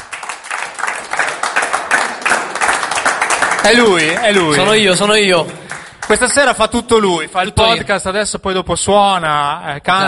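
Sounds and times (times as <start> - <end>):
live crowd applauding: 0.0 - 6.5
speech: 3.6 - 10.0.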